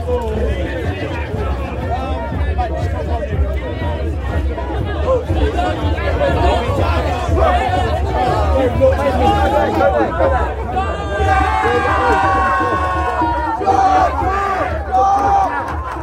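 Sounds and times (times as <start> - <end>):
thousands of people gathered at Stonehenge at summer solstice sunrise: 0.0 - 16.0
laughter: 4.2 - 16.0.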